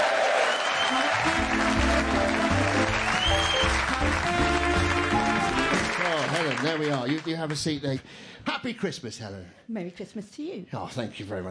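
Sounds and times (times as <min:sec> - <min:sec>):
audience applause at a Christmas show: 0:00.0 - 0:08.0
music: 0:00.7 - 0:07.0
speech: 0:06.8 - 0:11.4.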